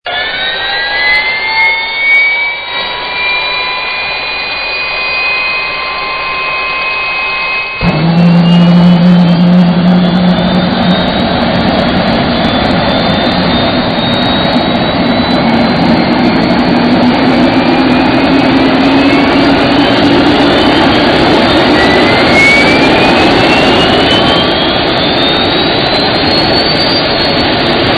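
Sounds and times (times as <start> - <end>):
turbine: 0.0 - 27.9.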